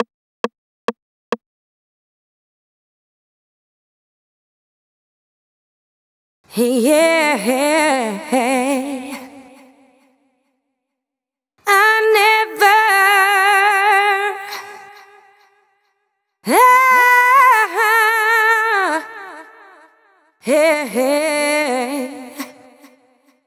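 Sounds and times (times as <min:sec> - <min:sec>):
vocal adlib effects at 136 bpm: 0:06.5 - 0:10.0, 0:11.7 - 0:15.4, 0:16.4 - 0:23.2.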